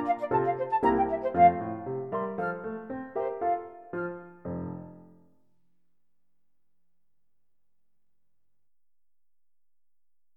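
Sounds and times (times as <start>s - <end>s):
flute: 0.0s - 3.8s.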